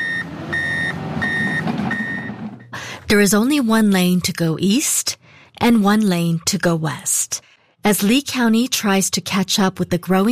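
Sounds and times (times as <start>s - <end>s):
truck reversing beeps at roadwork on Corkscrew Road, Estero: 0.0s - 3.0s
engine and traffic rumble at roadwork on Corkscrew Road: 0.0s - 3.1s
speech: 3.1s - 10.3s.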